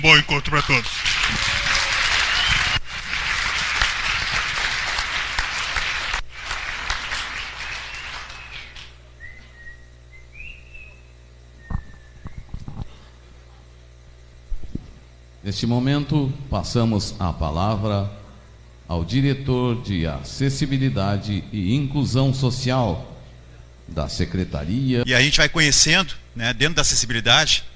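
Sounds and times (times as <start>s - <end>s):
speech: 0.0s - 1.8s, 15.5s - 18.2s, 18.9s - 23.1s, 23.9s - 27.7s
crowd applauding: 0.0s - 9.0s
sharp whistles from the audience: 2.3s - 2.8s, 7.6s - 12.6s.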